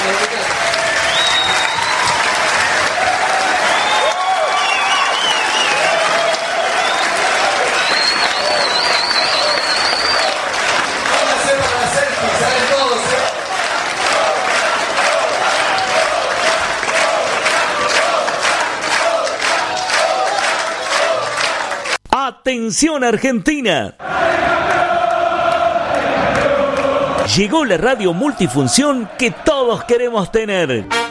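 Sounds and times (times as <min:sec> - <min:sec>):
audience cheering: 0:00.0 - 0:22.0, 0:24.0 - 0:30.8
audience clapping: 0:00.0 - 0:22.0, 0:24.1 - 0:30.4
audience whistles: 0:00.2 - 0:02.3, 0:03.6 - 0:10.4
speech: 0:22.7 - 0:24.0, 0:27.3 - 0:31.0.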